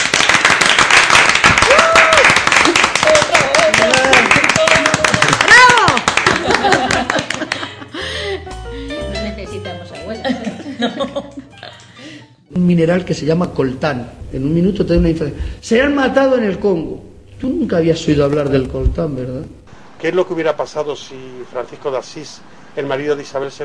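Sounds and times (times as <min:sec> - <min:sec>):
audience applause: 0:00.0 - 0:07.8
laughter: 0:06.2 - 0:08.5, 0:10.2 - 0:12.3
speech: 0:12.6 - 0:23.6.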